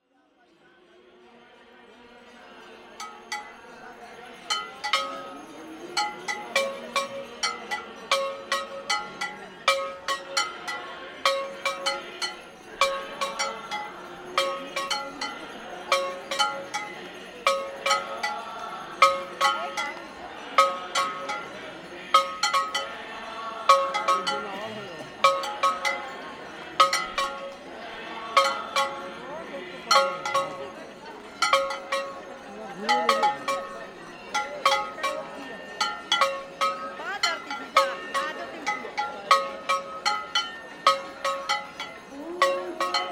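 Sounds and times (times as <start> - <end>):
religious music at Ganga Aarti ceremony in Haridwar: 0.5 - 43.1.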